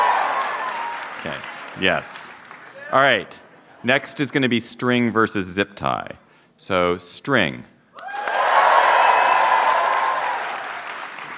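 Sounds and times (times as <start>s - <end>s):
audience cheering and making noise: 0.0s - 3.4s, 8.0s - 11.3s
speech: 1.2s - 7.7s.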